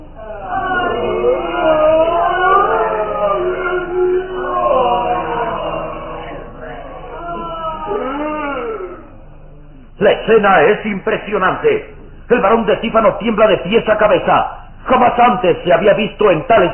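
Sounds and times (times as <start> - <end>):
ghostly moans and wailing screams of corpses: 0.2 - 9.2
speech: 10.3 - 16.7.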